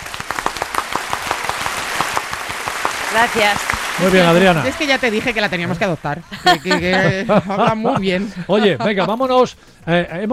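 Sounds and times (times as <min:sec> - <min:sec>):
audience applause: 0:00.0 - 0:07.2
speech: 0:03.1 - 0:10.3
laughter: 0:04.0 - 0:09.6.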